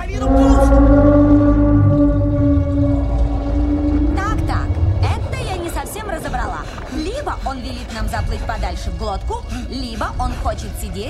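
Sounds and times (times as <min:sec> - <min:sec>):
deep whale call: 0:00.0 - 0:07.0
speech: 0:09.1 - 0:11.0.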